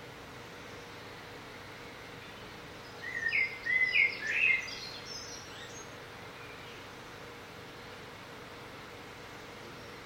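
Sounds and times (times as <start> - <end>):
soft steady hiss: 0.0 - 10.0
bird chirping song: 2.2 - 6.9.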